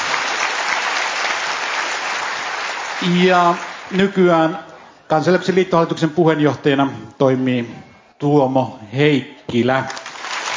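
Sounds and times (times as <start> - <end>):
audience applause: 0.0 - 4.0, 9.9 - 10.5
speech: 3.0 - 10.0.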